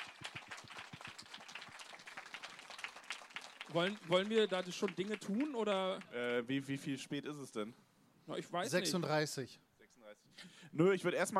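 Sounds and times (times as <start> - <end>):
audience applause: 0.0 - 6.2
speech: 3.7 - 11.3.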